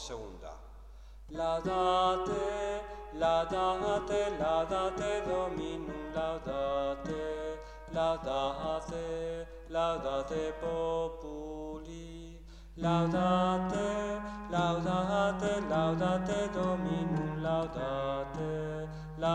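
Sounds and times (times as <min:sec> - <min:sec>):
soprano singing: 0:01.3 - 0:19.3.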